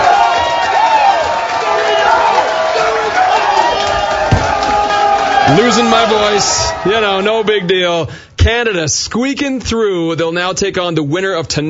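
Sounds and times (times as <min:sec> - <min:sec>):
bar crowd cheering a soccer goal: 0:00.0 - 0:08.2
speech: 0:05.5 - 0:11.6.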